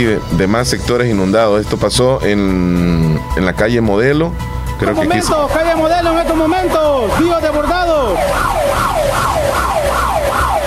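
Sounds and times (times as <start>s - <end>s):
speech: 0.0s - 9.0s
civil protection alarm siren wailing: 5.1s - 10.6s.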